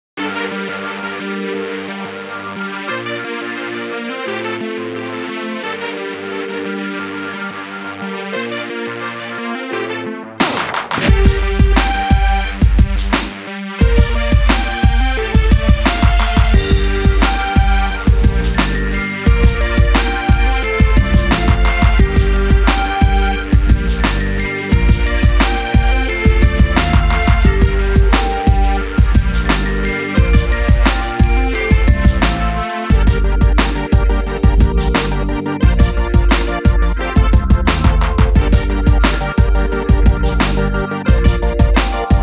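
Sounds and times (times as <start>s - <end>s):
electro funk music: 10.4s - 42.2s.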